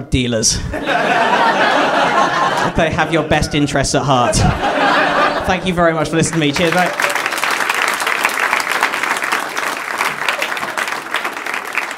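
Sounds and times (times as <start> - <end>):
speech: 0.0 - 1.7, 2.6 - 7.1
laughter: 0.7 - 11.9
audience clapping: 5.0 - 11.9.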